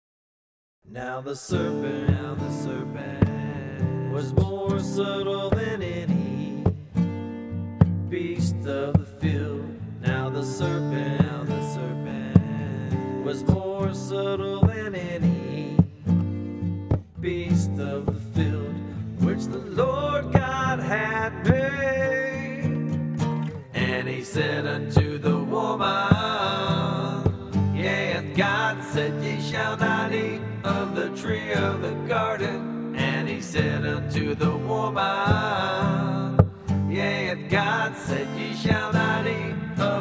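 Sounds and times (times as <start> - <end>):
acoustic music: 1.5 - 39.9.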